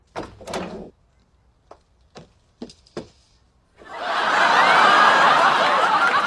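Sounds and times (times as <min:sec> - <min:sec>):
door opening: 0:00.0 - 0:01.0
laughter: 0:03.8 - 0:06.2.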